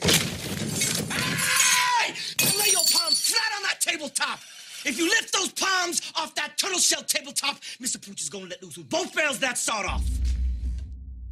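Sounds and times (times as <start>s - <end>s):
glass crushed by fist on table: 0.0s - 3.6s
man speaking forcefully: 1.8s - 10.2s
low rumble: 9.9s - 11.3s.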